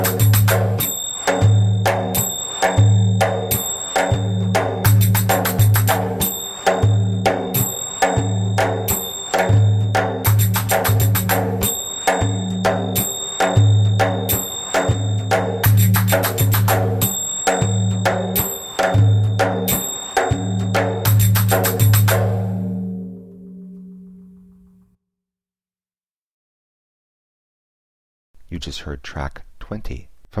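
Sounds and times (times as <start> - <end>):
djembe: 0.0 - 23.0
person speaking fast: 28.5 - 30.3.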